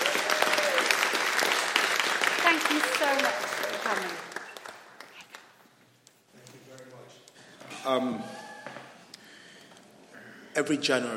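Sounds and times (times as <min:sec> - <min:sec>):
audience applause: 0:00.0 - 0:05.6
speech: 0:02.7 - 0:04.3, 0:07.9 - 0:08.4, 0:10.6 - 0:11.1.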